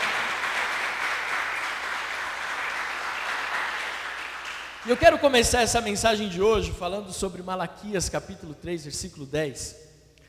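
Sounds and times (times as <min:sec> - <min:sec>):
audience applauding: 0:00.0 - 0:05.2
speech: 0:04.8 - 0:09.9.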